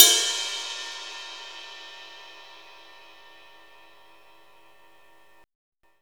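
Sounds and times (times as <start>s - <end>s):
drum and bass ride cymbal pattern: 0.0s - 5.4s.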